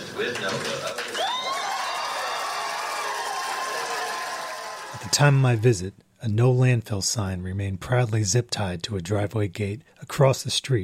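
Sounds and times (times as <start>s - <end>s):
speech: 0.2s - 1.4s, 5.1s - 10.8s
packed room cheering and applauding: 0.2s - 5.7s.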